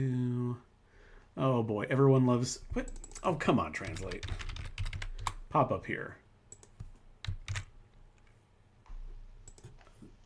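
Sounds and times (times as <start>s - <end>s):
speech: 1.4s - 4.5s, 5.5s - 6.2s
typing on a computer keyboard: 2.9s - 5.4s, 6.5s - 7.7s, 9.5s - 9.9s.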